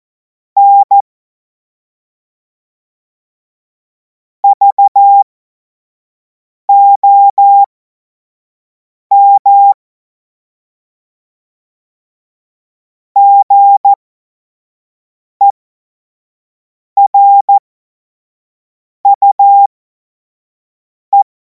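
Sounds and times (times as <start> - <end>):
Morse code course tones: 0.6 - 1.0, 4.4 - 5.2, 6.7 - 7.7, 9.1 - 9.8, 13.2 - 14.0, 17.0 - 17.6, 19.1 - 19.7.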